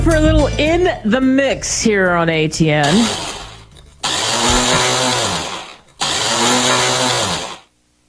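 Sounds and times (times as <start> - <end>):
speech: 0.2 - 3.3
blender running: 2.8 - 7.7.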